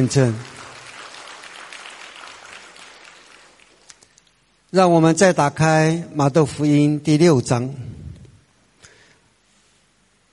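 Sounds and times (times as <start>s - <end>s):
speech: 0.0s - 0.6s, 4.7s - 7.9s
audience applauding: 0.0s - 4.0s.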